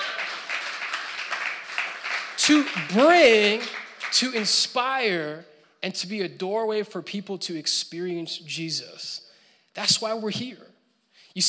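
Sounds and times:
audience clapping: 0.0s - 4.9s
speech: 2.4s - 10.7s.

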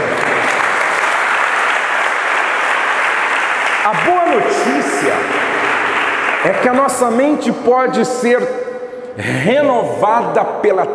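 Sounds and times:
audience applause: 0.0s - 7.3s
speech: 3.9s - 5.5s, 6.4s - 8.6s, 9.2s - 10.9s.

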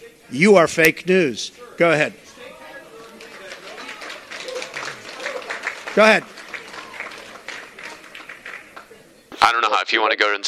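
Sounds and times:
speech: 0.3s - 2.2s, 6.0s - 6.3s, 9.4s - 10.4s
staffers clapping at press conference: 2.8s - 9.0s
staffers cheering and whooping at press conference: 3.6s - 5.9s, 6.5s - 8.0s.

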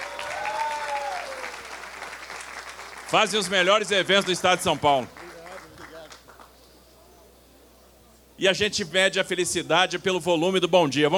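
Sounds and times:
audience applause: 0.0s - 6.5s
speech: 3.1s - 5.2s, 8.4s - 11.1s.

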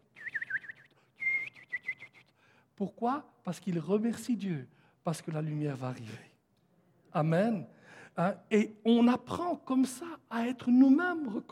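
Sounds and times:
whistled imitation of birds singing: 0.0s - 2.4s
speech: 2.8s - 6.3s, 7.1s - 11.5s.

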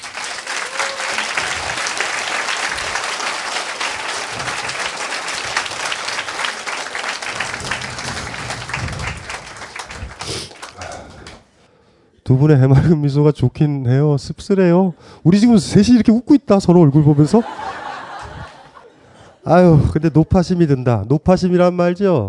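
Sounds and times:
audience applause: 0.0s - 11.5s
speech: 12.3s - 17.6s, 19.5s - 22.2s
laughter: 16.8s - 20.2s.

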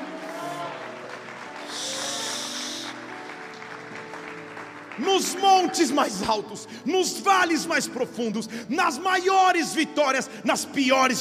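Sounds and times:
audience applauding and shouting: 0.0s - 6.7s
speech: 5.0s - 11.1s.

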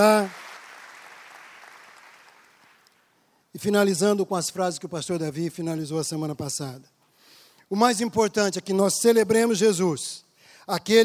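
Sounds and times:
speech: 0.0s - 0.4s, 3.6s - 7.0s, 7.7s - 11.0s
audience applause: 0.0s - 2.9s.

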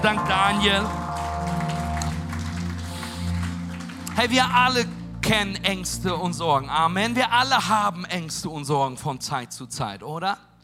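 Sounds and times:
speech: 0.0s - 1.0s, 4.2s - 10.6s
crowd applauding: 0.0s - 5.5s
droning keyboard chords: 0.0s - 8.8s.

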